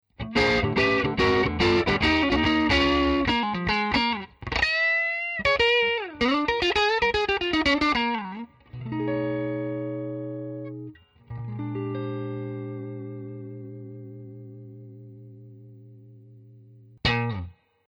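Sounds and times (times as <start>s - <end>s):
blues music: 0.1s - 17.6s.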